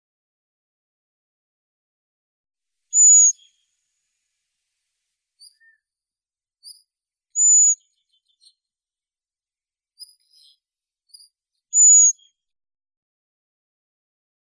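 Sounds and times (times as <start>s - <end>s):
blackbird, Turdus merula: 2.9s - 3.6s, 5.4s - 5.8s, 6.6s - 8.6s, 10.0s - 12.3s.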